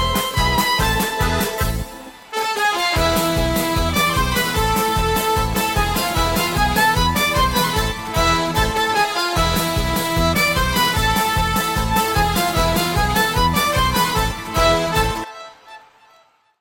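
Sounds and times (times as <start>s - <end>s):
violin melody: 0.0s - 16.4s.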